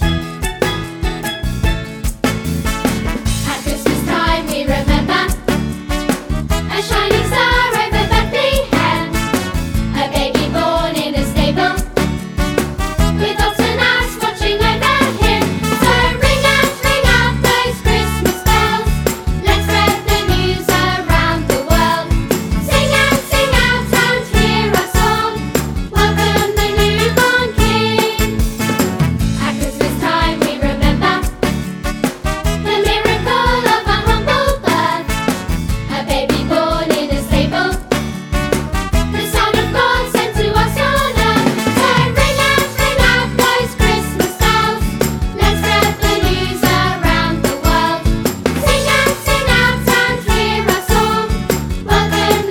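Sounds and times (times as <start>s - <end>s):
nativity song: 0.1s - 52.4s.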